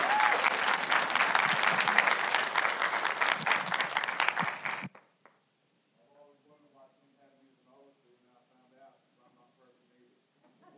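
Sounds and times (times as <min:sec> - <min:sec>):
church audience applause: 0:00.0 - 0:05.1.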